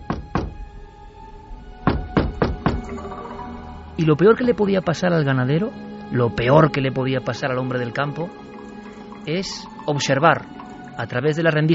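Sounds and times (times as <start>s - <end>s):
knocking on a wooden door: 0.0s - 0.6s, 1.8s - 3.0s
speech: 4.0s - 8.5s, 9.2s - 11.7s.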